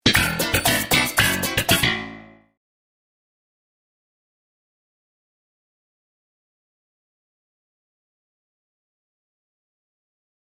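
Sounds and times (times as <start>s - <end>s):
sitcom bass riff: 0.0s - 2.6s.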